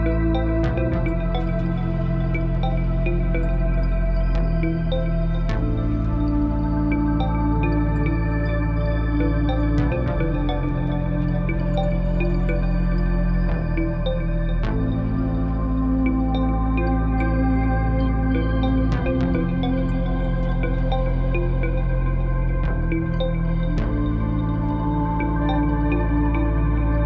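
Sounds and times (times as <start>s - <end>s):
old DN synthesizer patterns: 0.0s - 27.0s.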